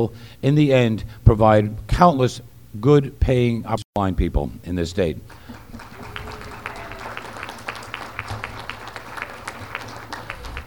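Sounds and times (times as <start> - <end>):
speech: 0.0 - 5.8
audience applause: 5.3 - 10.6.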